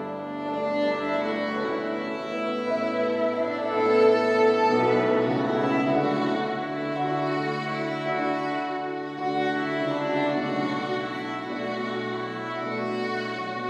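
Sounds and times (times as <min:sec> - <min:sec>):
violin: 0:00.0 - 0:13.6.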